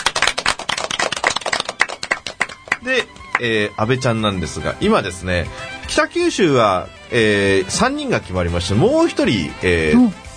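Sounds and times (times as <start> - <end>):
small group applauding: 0.0 - 3.7
speech: 2.8 - 10.2.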